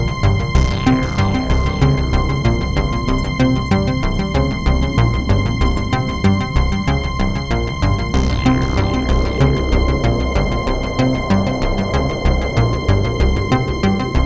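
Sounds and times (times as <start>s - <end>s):
wind: 0.0s - 14.2s.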